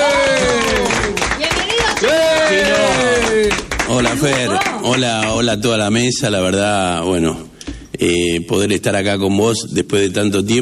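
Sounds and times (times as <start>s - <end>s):
applause: 0.0s - 5.5s
speech: 4.0s - 10.6s.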